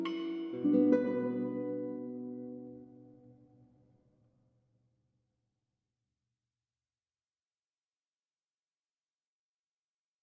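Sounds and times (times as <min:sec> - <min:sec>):
classical guitar prelude: 0:00.0 - 0:03.8.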